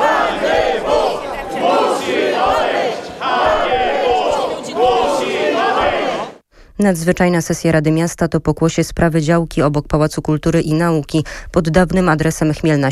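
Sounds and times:
crowd of Warsaw residents shouting at a city council session: 0.0s - 6.4s
speech: 6.8s - 12.9s.

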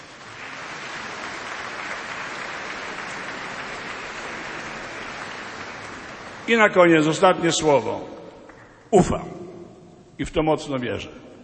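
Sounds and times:
audience applause: 0.0s - 7.8s
speech: 6.5s - 8.2s, 8.9s - 9.4s, 10.2s - 11.2s.

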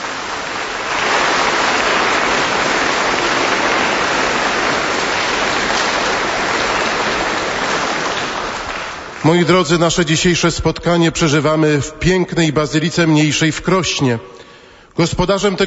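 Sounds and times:
large crowd applause: 0.0s - 9.8s
speech: 9.2s - 14.4s, 15.0s - 15.6s.

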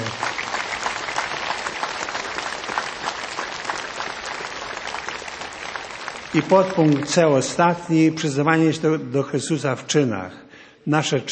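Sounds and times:
audience applause: 0.0s - 7.7s
speech: 6.4s - 11.3s.

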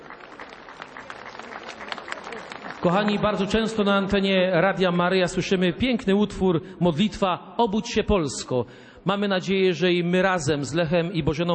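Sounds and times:
audience applause: 0.0s - 4.0s
speech: 2.8s - 11.5s.

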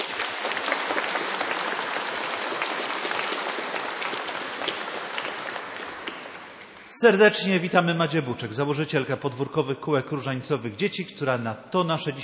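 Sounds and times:
audience applause: 0.0s - 6.9s
speech: 7.0s - 12.2s.

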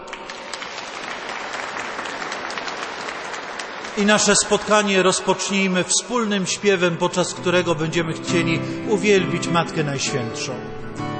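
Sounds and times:
audience applause: 0.0s - 5.6s
speech: 4.0s - 11.1s.

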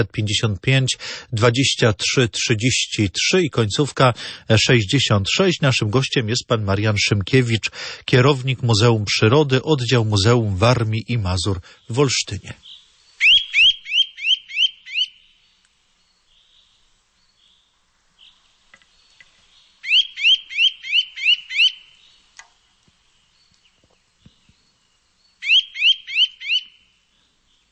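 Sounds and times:
speech: 0.0s - 12.7s
Eurasian nuthatch calling in rapid ringing whistles: 12.6s - 15.2s, 19.8s - 22.2s, 25.4s - 26.9s
faint ticks: 15.6s - 15.8s, 18.7s - 19.4s, 22.3s - 24.6s.

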